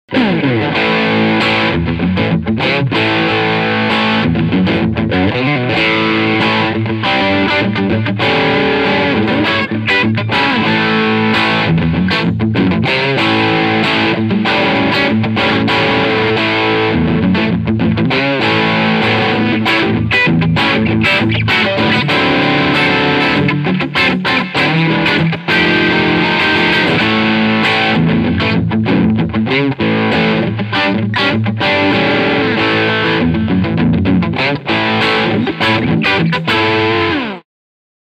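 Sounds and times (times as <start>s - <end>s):
Tribute Doheny Surf Green electric guitar crunch with both pickups: 0.1s - 37.4s.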